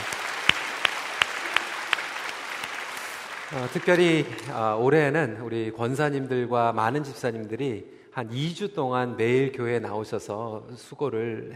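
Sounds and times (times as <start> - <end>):
audience applause: 0.0 - 4.8
speech: 3.5 - 11.5.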